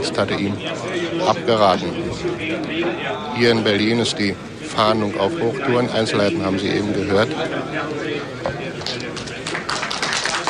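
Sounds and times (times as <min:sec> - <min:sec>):
speech: 0:00.0 - 0:09.1
applause at a press conference: 0:08.8 - 0:10.4.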